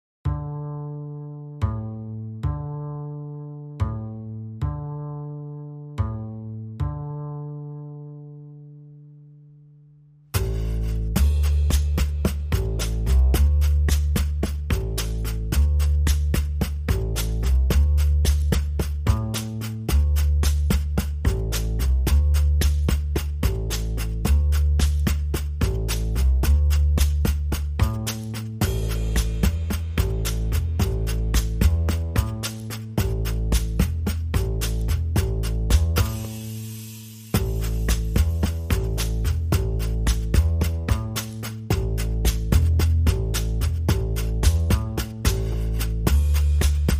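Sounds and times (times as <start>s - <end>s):
bass: 0.0s - 46.9s
drums: 10.4s - 46.9s.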